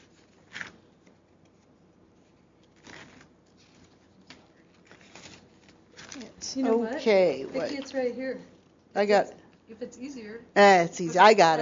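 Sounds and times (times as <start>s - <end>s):
papers being shuffled at a meeting: 0.0s - 8.0s
speech: 6.4s - 11.6s.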